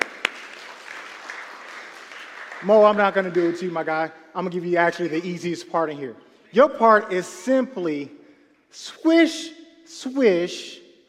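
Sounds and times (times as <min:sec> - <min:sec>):
crowd applauding: 0:00.0 - 0:04.0
speech: 0:02.6 - 0:10.8.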